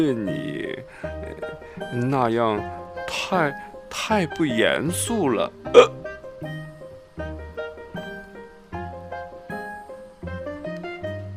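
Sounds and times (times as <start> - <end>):
speech: 0.0 - 6.6
repeated hiccups: 5.7 - 6.0.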